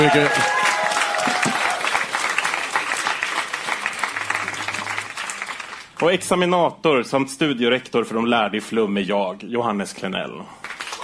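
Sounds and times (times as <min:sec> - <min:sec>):
speech: 0:00.0 - 0:00.5, 0:06.0 - 0:10.6
audience applause: 0:00.0 - 0:06.0, 0:10.6 - 0:11.0.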